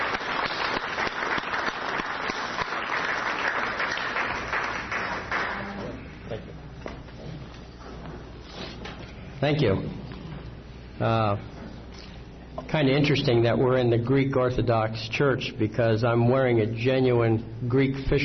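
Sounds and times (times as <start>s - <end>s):
warm round of applause: 0.0s - 6.0s
speech: 9.4s - 10.0s, 11.0s - 11.5s, 12.7s - 18.2s.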